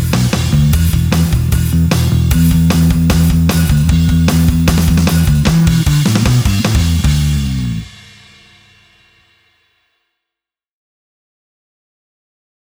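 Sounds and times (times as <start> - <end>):
electric rhythm guitar playing a backing track: 0.5 - 7.8.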